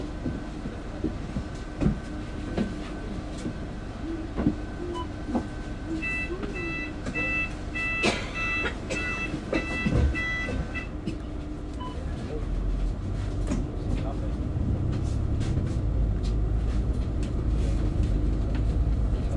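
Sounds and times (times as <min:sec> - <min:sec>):
metro train rumble: 0:00.0 - 0:19.3
bright evenly spaced beeping: 0:06.0 - 0:11.0.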